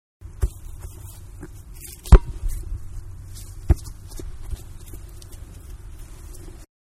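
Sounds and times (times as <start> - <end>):
soccer ball being kicked: 0.3 - 2.7, 3.4 - 5.1
soccer ball dropping to ground: 0.4 - 5.4.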